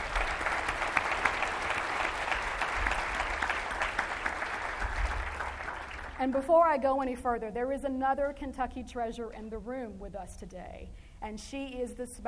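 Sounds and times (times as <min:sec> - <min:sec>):
audience applause: 0:00.0 - 0:06.3
speech: 0:06.2 - 0:12.2.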